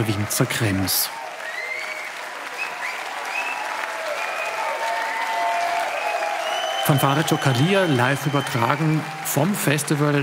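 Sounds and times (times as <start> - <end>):
speech: 0.0 - 1.2, 6.9 - 10.2
festival audience applause and cheering in the courtyard of the Winzer Krems winery: 0.0 - 10.2
whistles: 1.4 - 4.7, 5.9 - 9.0.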